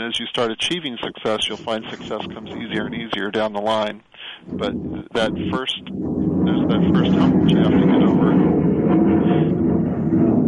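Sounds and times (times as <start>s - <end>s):
speech: 0.0s - 9.6s
airplane flying overhead: 4.4s - 10.4s.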